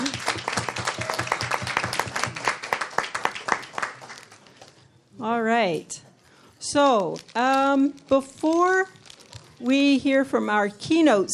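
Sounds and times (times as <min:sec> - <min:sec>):
audience applause: 0:00.0 - 0:04.3
speech: 0:05.2 - 0:09.0, 0:09.6 - 0:11.3.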